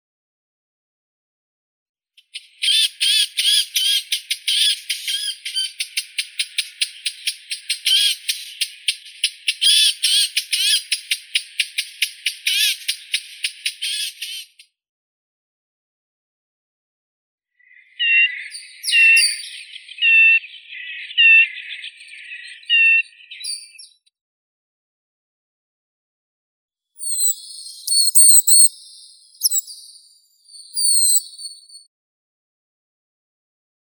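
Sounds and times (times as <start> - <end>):
Sylvia atricapilla blackcap song: 2.2 - 14.6, 17.6 - 24.0, 27.0 - 31.9.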